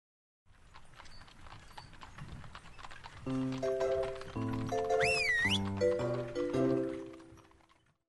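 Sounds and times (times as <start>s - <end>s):
horse hooves clip-clopping for a horse-drawn wagon: 0.5s - 8.0s
light instrumental music with sustained notes: 3.3s - 7.4s.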